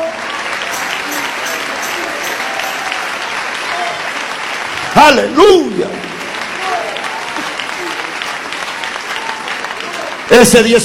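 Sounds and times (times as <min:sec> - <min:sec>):
crowd applauding: 0:00.0 - 0:10.8
indistinct voices: 0:00.6 - 0:04.1
speech: 0:05.0 - 0:06.1, 0:10.3 - 0:10.8.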